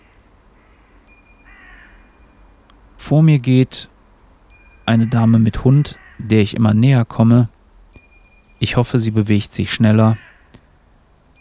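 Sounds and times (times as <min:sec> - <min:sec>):
birds calling over a field: 0:00.0 - 0:11.3
speech: 0:03.1 - 0:03.9, 0:04.9 - 0:07.6, 0:08.6 - 0:10.3.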